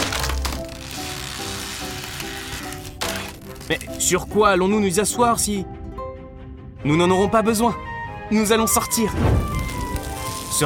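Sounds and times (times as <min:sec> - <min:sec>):
wooden chair being broken: 0:00.0 - 0:04.1
speech: 0:03.7 - 0:05.7, 0:06.8 - 0:09.6.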